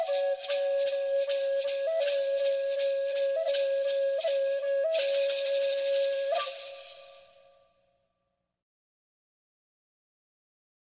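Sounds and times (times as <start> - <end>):
zen flute music: 0.0 - 7.6.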